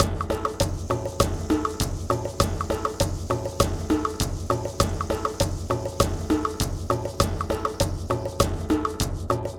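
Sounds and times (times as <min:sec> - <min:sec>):
cave ceremony percussion: 0:00.0 - 0:09.5.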